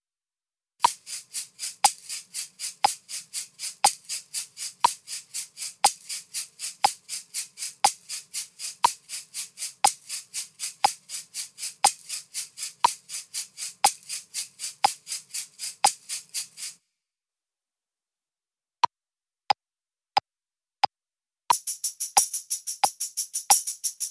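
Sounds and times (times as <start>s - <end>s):
shakers playing accented sixteenth notes: 0.8s - 16.7s, 21.5s - 24.0s.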